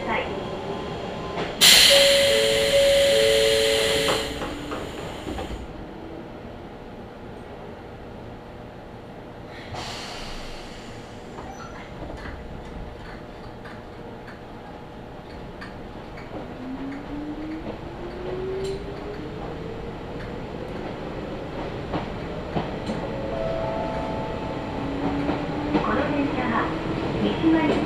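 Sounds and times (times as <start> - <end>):
tones of another train passing: 0.0 - 6.5, 13.5 - 27.8
Izuhakone Railway train carriage rumble: 0.0 - 27.8
loud hissing burst: 1.6 - 5.5.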